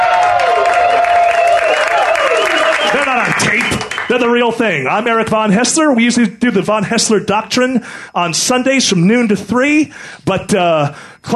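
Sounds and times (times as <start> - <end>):
studio audience cheering and whooping: 0.0 - 4.0
studio audience clapping: 0.0 - 4.5
speech: 4.1 - 11.3.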